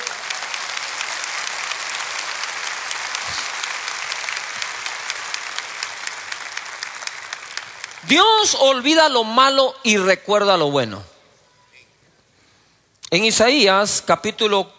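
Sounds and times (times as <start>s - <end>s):
audience applause: 0.0s - 8.6s
speech: 8.0s - 11.1s, 13.1s - 14.7s.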